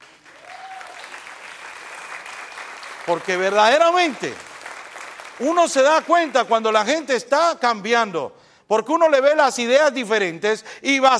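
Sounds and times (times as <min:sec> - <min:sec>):
church congregation applauding: 0:00.0 - 0:07.1
speech: 0:03.1 - 0:04.5, 0:05.4 - 0:11.1.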